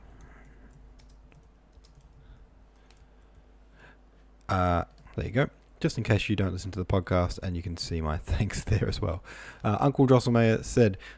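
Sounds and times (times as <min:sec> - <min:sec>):
computer keyboard keys clicking while typing a comment: 0:00.2 - 0:02.2
speech: 0:04.5 - 0:11.1.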